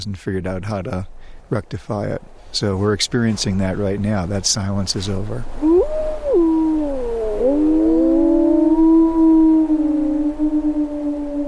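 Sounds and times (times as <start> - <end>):
speech: 0.0 - 6.4
wolves howling in Yellowstone: 5.6 - 11.4.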